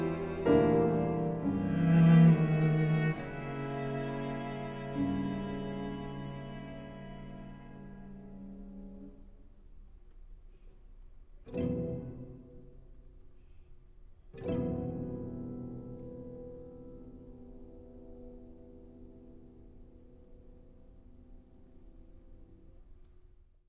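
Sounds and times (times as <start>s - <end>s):
piano quartet playing allegro moderato: 0.0s - 9.3s, 11.5s - 12.9s, 14.4s - 21.8s.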